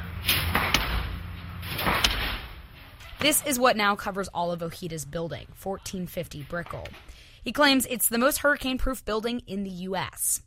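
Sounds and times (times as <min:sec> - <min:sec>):
cannon-fired wooden beam striking hurricane glass: 0:00.2 - 0:02.8
speech: 0:03.2 - 0:10.4.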